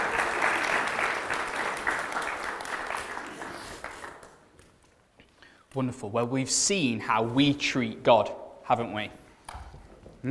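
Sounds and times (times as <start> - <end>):
audience applause: 0.0 - 4.6
speech: 5.8 - 9.2.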